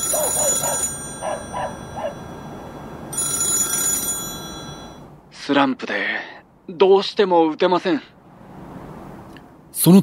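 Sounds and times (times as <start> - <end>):
telephone ringing: 0.0 - 5.2
speech: 5.5 - 8.1, 9.8 - 10.0.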